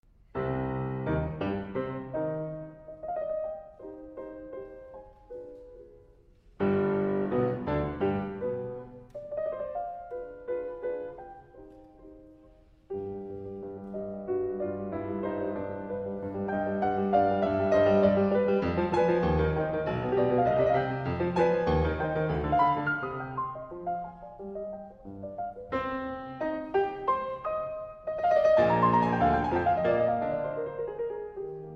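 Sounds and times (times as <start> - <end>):
piano sonata: 0.0 - 31.7.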